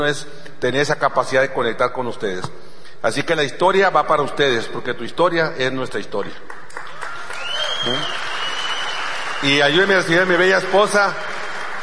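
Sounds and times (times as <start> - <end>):
speech: 0.0 - 6.8, 7.8 - 8.3, 9.4 - 11.3
audience applause: 6.6 - 11.8.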